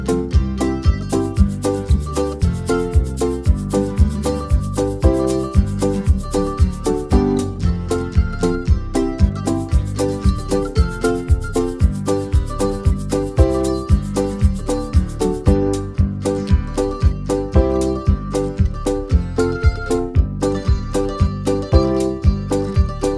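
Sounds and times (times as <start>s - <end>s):
banjo backing track in the key of G: 0.0s - 23.1s.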